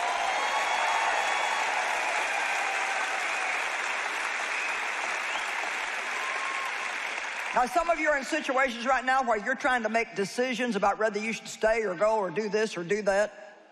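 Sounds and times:
audience clapping: 0:00.0 - 0:08.8
speech: 0:07.6 - 0:13.4.

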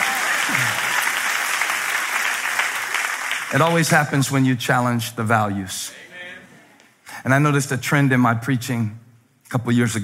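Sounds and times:
audience applause: 0:00.0 - 0:04.2
speech: 0:00.5 - 0:00.8, 0:03.5 - 0:06.1, 0:07.2 - 0:10.0.

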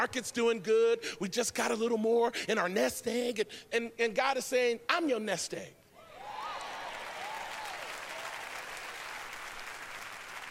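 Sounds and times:
speech: 0:00.0 - 0:05.8
faint cheers or whoops: 0:06.0 - 0:08.5
crowd applauding: 0:06.2 - 0:10.4.

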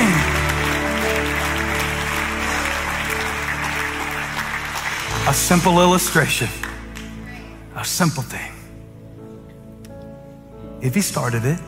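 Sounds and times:
audience clapping: 0:00.0 - 0:07.6
speech: 0:05.3 - 0:06.6, 0:07.8 - 0:08.5, 0:10.8 - 0:11.6.

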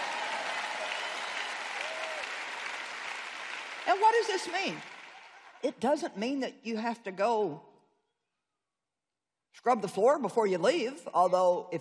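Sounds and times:
few people clapping: 0:00.0 - 0:05.6
speech: 0:03.9 - 0:04.9, 0:05.6 - 0:07.7, 0:09.6 - 0:11.8.

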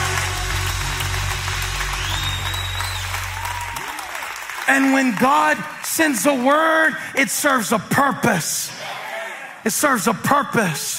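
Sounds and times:
hands clapping: 0:00.0 - 0:06.9
speech: 0:04.7 - 0:09.0, 0:09.6 - 0:10.9.

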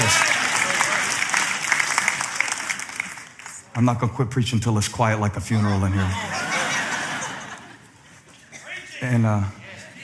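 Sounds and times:
audience clapping: 0:00.0 - 0:03.9
speech: 0:03.8 - 0:06.4, 0:09.0 - 0:09.6
laughter: 0:05.5 - 0:08.2.

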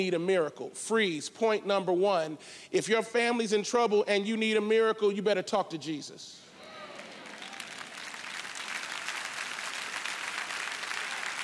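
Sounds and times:
speech: 0:00.0 - 0:06.4
mild smattering of applause in church: 0:06.6 - 0:11.4.

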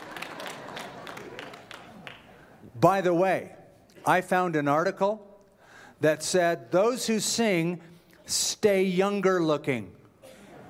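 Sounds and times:
singers clapping in rhythm: 0:00.0 - 0:02.4
speech: 0:02.8 - 0:05.3, 0:06.0 - 0:10.0.

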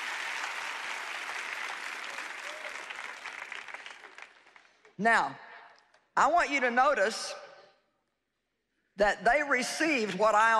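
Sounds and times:
audience clapping: 0:00.0 - 0:05.0
speech: 0:05.0 - 0:05.4, 0:06.2 - 0:07.4, 0:09.0 - 0:10.5.

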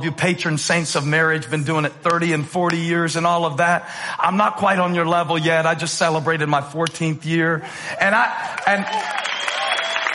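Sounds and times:
speech: 0:00.0 - 0:09.3
audience applause during a talk about marriage: 0:08.1 - 0:10.1.

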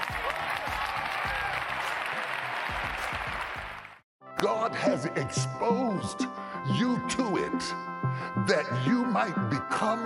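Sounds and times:
audience clapping hands: 0:00.0 - 0:04.0
speech: 0:04.4 - 0:10.0.

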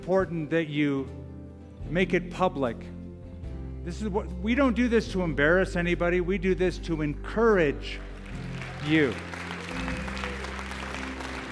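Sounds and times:
speech: 0:00.0 - 0:03.0, 0:03.8 - 0:08.1, 0:08.8 - 0:09.9
audience applause: 0:08.0 - 0:11.5.

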